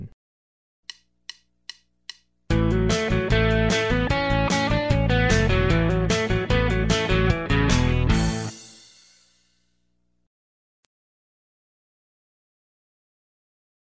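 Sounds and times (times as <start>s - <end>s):
country rock music: 2.5s - 8.7s.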